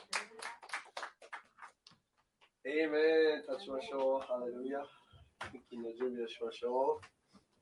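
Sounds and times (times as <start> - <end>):
church congregation clapping in thanks to God to close a service: 0.0 - 1.9
speech: 2.6 - 7.2.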